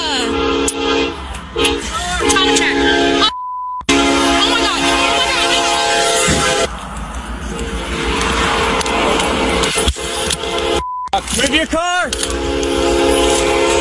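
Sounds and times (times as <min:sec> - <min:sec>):
train rushing past: 0:00.0 - 0:03.0, 0:04.2 - 0:13.7
train horn: 0:00.0 - 0:03.3, 0:03.9 - 0:06.7, 0:09.4 - 0:10.8, 0:12.1 - 0:13.7
steady beep: 0:02.3 - 0:06.7, 0:10.3 - 0:11.2.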